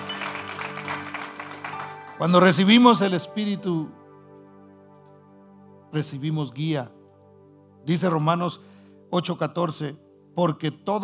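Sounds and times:
audience applause: 0:00.0 - 0:02.6
speech: 0:02.2 - 0:04.0, 0:05.9 - 0:07.0, 0:07.8 - 0:11.0.

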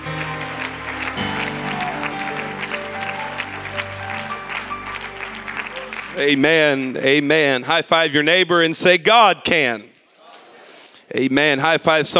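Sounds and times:
sustained keyboard chords: 0:00.0 - 0:07.2
audience clapping hands: 0:00.0 - 0:07.4
speech: 0:06.2 - 0:09.9, 0:11.1 - 0:12.1.

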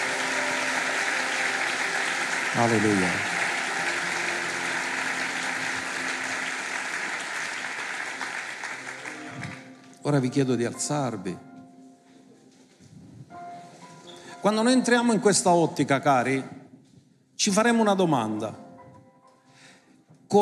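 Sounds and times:
audience applause: 0:00.0 - 0:09.9
speech: 0:02.5 - 0:03.3, 0:10.0 - 0:11.5, 0:14.4 - 0:16.6, 0:17.4 - 0:18.6.

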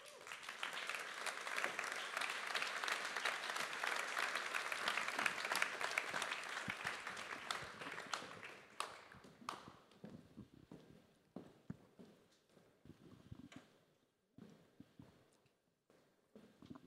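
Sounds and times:
audience applause: 0:00.0 - 0:09.6.

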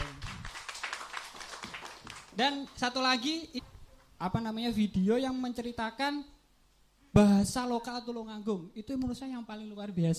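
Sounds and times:
audience applause: 0:00.0 - 0:02.4
speech: 0:02.4 - 0:06.4, 0:07.1 - 0:10.1.

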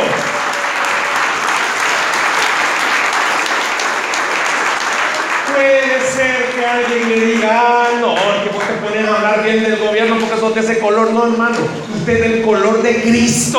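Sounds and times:
crowd clapping: 0:00.0 - 0:10.5
speech: 0:08.8 - 0:13.5.

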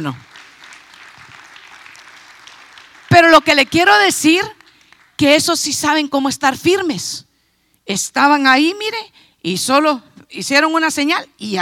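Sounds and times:
speech: 0:00.0 - 0:00.4, 0:03.4 - 0:04.6, 0:05.2 - 0:07.3, 0:07.9 - 0:11.6
crowd applauding: 0:00.2 - 0:04.0.

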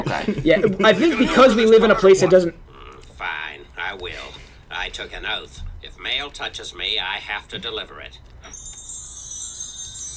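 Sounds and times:
laughter: 0:00.0 - 0:02.2
speech: 0:00.1 - 0:02.6, 0:03.9 - 0:08.3
wind chimes ringing: 0:08.5 - 0:10.1.

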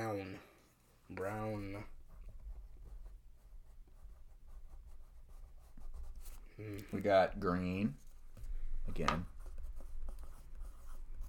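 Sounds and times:
scratching of writing on paper: 0:00.6 - 0:06.6, 0:07.9 - 0:11.2
speech: 0:01.1 - 0:02.0, 0:06.6 - 0:08.0, 0:08.9 - 0:09.3.

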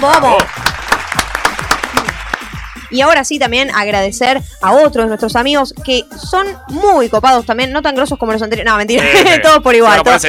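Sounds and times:
speech: 0:00.0 - 0:00.8, 0:02.9 - 0:10.2
applause: 0:00.0 - 0:03.0
laughter: 0:08.9 - 0:09.6.

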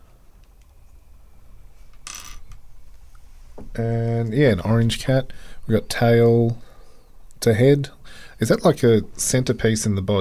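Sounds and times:
puzzle pieces dropping: 0:02.0 - 0:02.4
speech: 0:03.8 - 0:06.7, 0:07.4 - 0:10.1.

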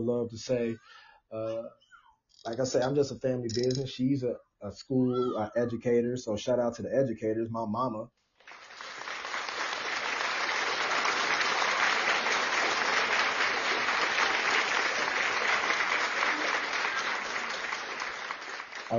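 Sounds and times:
speech: 0:00.0 - 0:01.8, 0:02.4 - 0:08.2
clapping: 0:08.4 - 0:18.9.

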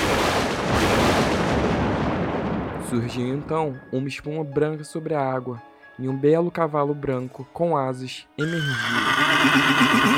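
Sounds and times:
loud thunderclap: 0:00.0 - 0:04.0
speech: 0:02.9 - 0:10.1.

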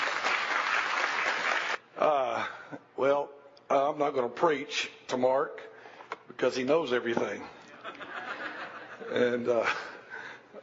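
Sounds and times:
round of applause: 0:00.0 - 0:01.8
speech: 0:04.0 - 0:05.7, 0:06.4 - 0:07.6, 0:09.0 - 0:09.9
laughter: 0:07.7 - 0:10.0.

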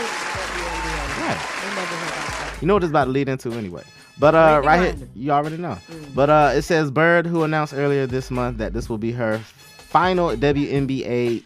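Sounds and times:
hand claps: 0:00.0 - 0:02.6
speech: 0:02.6 - 0:11.4.

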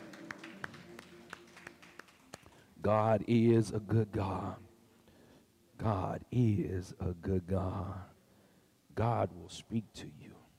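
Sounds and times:
audience hand clapping in praise: 0:00.0 - 0:02.7
speech: 0:02.8 - 0:04.7, 0:05.8 - 0:08.1, 0:09.0 - 0:10.4.

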